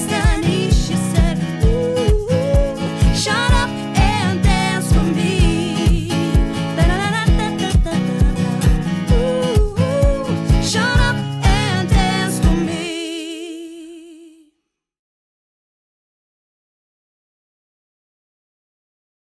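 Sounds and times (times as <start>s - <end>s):
acoustic duo playing a cover: 0.0s - 13.3s.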